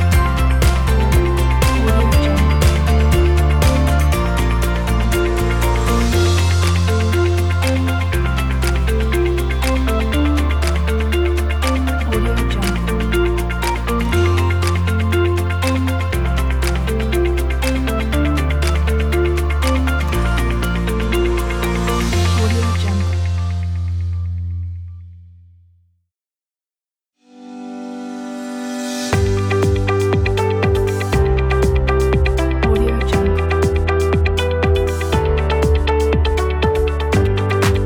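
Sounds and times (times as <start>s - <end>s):
inspired motivational corporate music: 0.0s - 24.7s, 27.5s - 37.8s.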